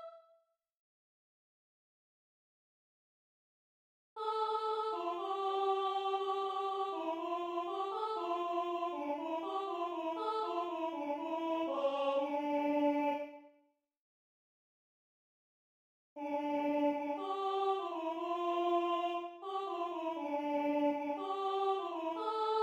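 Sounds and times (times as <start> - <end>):
soprano voice: 4.2 - 13.3, 16.2 - 22.6.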